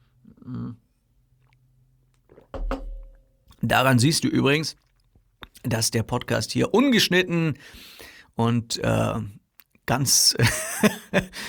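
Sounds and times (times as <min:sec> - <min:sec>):
person sipping water: 0:01.3 - 0:02.6, 0:04.7 - 0:05.6
speech: 0:03.7 - 0:04.8, 0:05.6 - 0:11.4.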